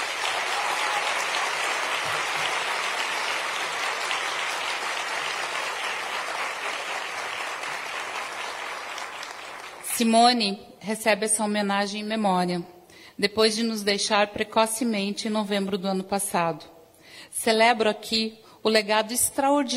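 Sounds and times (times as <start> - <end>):
applause: 0.0 - 10.1
speech: 10.0 - 19.7.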